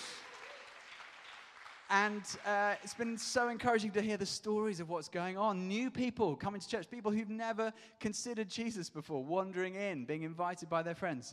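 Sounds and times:
audience applause: 0.0s - 3.6s
speech: 1.9s - 11.3s.

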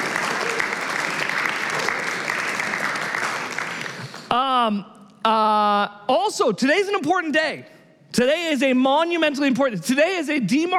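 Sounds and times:
audience round of applause: 0.0s - 4.3s
speech: 4.7s - 10.7s.

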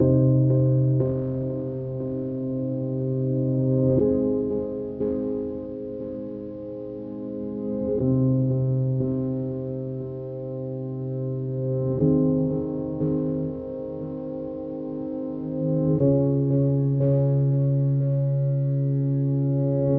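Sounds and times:
slow electro music at 60 bpm: 0.0s - 19.9s.

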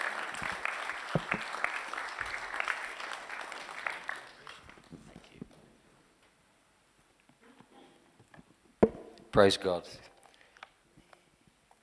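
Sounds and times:
audience applause welcoming a preacher: 0.0s - 5.4s
speech: 1.2s - 1.5s, 9.4s - 10.1s.

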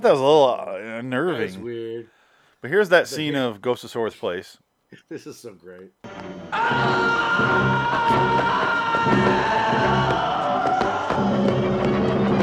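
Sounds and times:
speech: 0.0s - 10.3s
dramatic film sound: 6.0s - 12.4s
man screaming in film death scene: 6.5s - 11.3s.

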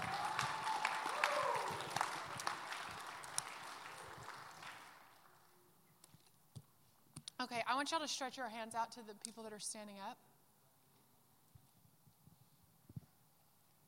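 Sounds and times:
crowd clapping: 0.0s - 5.5s
speech: 7.4s - 10.3s.

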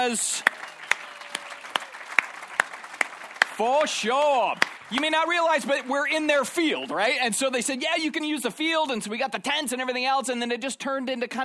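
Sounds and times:
speech: 0.0s - 0.6s, 3.6s - 11.4s
audience applause: 0.0s - 7.2s.

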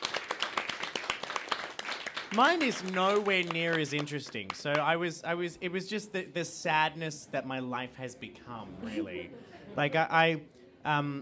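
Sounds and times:
applause: 0.0s - 4.9s
speech: 2.3s - 11.1s.

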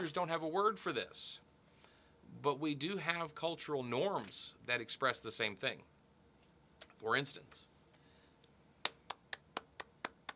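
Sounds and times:
speech: 0.0s - 1.5s, 2.3s - 5.9s, 7.0s - 7.7s
hands clapping: 8.8s - 10.3s.

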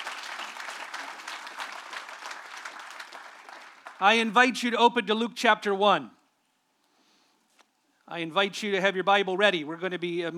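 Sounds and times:
audience applause: 0.0s - 4.2s
speech: 4.0s - 6.2s, 8.1s - 10.3s.

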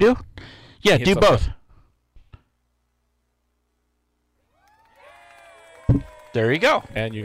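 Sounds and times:
speech: 0.0s - 1.6s, 6.0s - 7.2s
soundboard cheering effect: 4.6s - 7.1s.

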